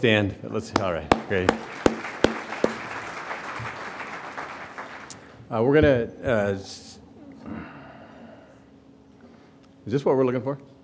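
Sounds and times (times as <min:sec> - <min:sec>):
speech: 0:00.0 - 0:02.0, 0:05.5 - 0:07.6, 0:09.8 - 0:10.7
audience applause: 0:01.1 - 0:05.3.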